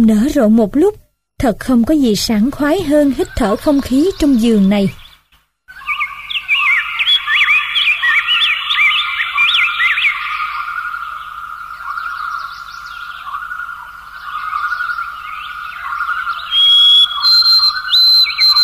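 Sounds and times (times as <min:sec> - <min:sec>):
speech: 0:00.0 - 0:05.0
caged canaries and larks chirping and warbling in a large aviary: 0:02.0 - 0:18.6
high whistle-like tone: 0:16.5 - 0:18.6.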